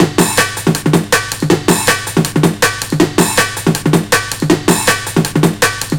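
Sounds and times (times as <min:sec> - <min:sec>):
drum and bass drum loop: 0:00.0 - 0:05.9.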